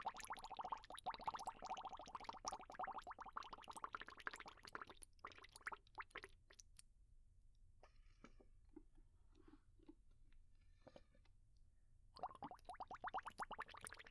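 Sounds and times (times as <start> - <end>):
bubbles: 0.0 - 6.6, 12.2 - 14.0.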